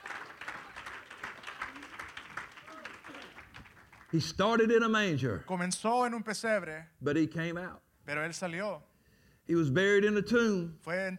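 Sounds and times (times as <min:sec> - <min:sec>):
audience clapping hands in applause: 0:00.0 - 0:04.4
speech: 0:04.1 - 0:08.9, 0:09.5 - 0:11.1.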